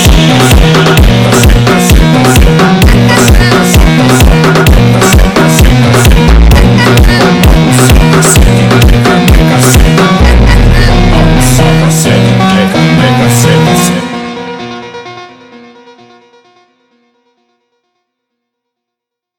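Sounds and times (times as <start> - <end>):
gangster criminal funk music: 0.0 - 15.4.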